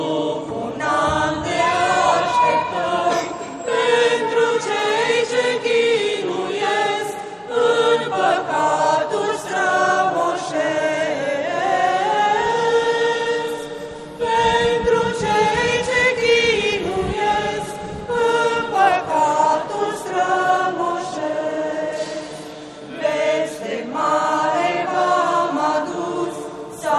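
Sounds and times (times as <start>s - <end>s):
Romanian Orthodox church choir singing: 0.0s - 26.9s.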